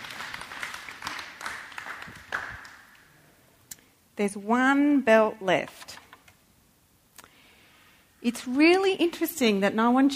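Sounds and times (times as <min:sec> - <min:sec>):
audience applause: 0:00.0 - 0:03.0
speech: 0:04.2 - 0:05.8, 0:08.2 - 0:10.1.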